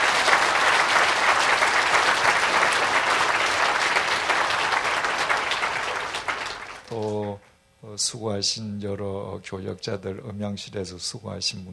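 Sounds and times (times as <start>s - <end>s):
audience applauding: 0.0s - 7.4s
speech: 8.0s - 11.7s.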